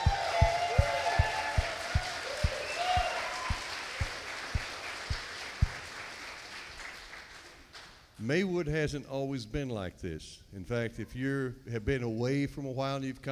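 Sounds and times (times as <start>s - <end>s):
raised voices and whoops: 0.0s - 4.2s
audience clapping: 0.0s - 8.2s
speech: 8.3s - 13.3s.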